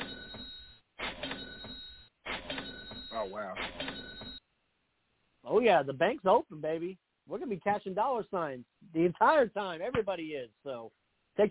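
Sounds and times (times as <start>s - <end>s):
cash register ka-ching sound effect: 0.0s - 4.4s
speech: 3.2s - 4.1s, 5.5s - 11.4s.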